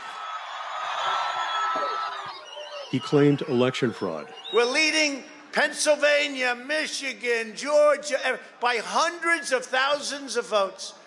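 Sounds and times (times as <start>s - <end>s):
raucous applause for Trump coming on stage: 0.0s - 4.9s
speech: 2.9s - 11.0s.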